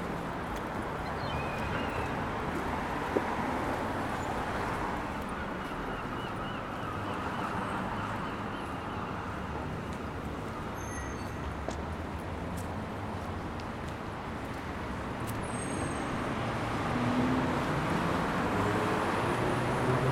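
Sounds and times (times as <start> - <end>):
urban soundscape in Swansea: 0.0 - 20.1.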